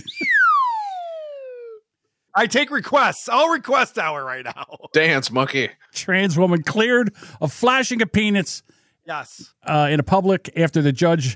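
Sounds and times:
slide whistle: 0.0 - 1.8
speech: 2.4 - 11.3.

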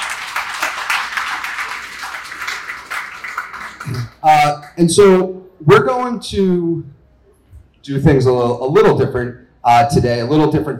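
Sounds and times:
audience applause: 0.0 - 4.2
speech: 3.9 - 7.0, 7.8 - 10.7.

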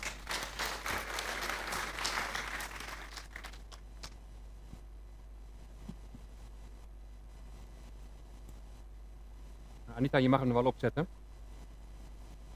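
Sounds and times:
audience applause: 0.0 - 4.2
speech: 10.0 - 11.2.

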